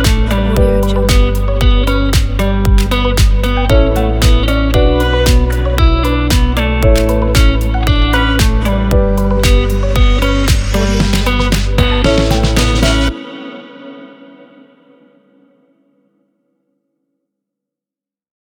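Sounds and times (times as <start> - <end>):
tropical house chill music: 0.0 - 14.1.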